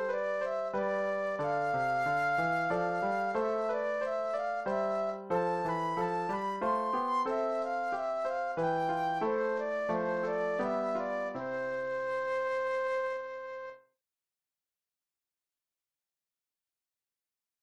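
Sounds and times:
classical flute solo: 0.0s - 13.9s.

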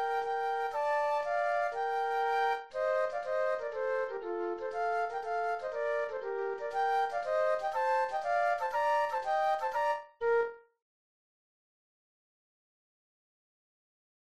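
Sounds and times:
classical flute duet playing a march: 0.0s - 10.6s.

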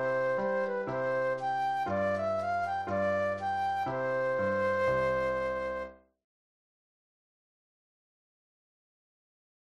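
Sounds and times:
flute solo: 0.0s - 6.0s.

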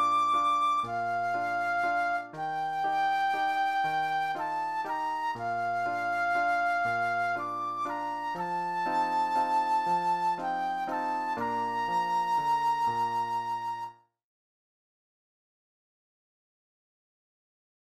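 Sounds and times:
flute solo: 0.0s - 14.1s.

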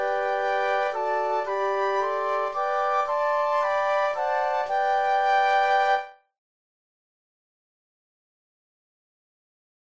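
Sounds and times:
flute quartet: 0.0s - 6.2s.

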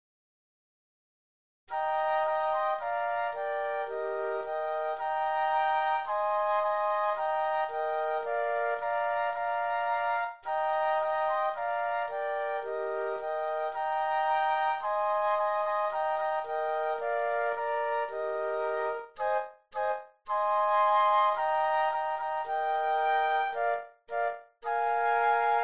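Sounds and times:
flute trio playing: 1.7s - 25.6s.

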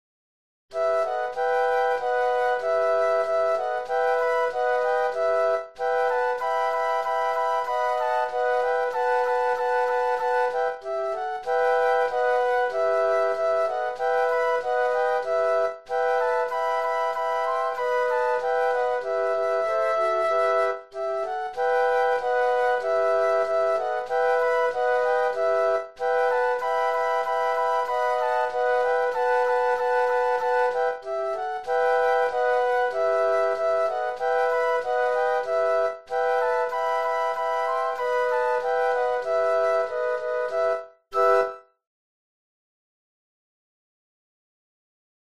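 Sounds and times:
flute quartet: 0.7s - 41.7s.

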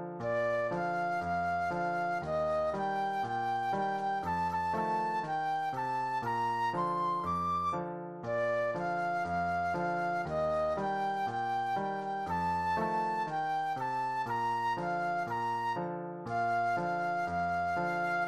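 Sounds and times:
flute solo: 0.2s - 18.2s.

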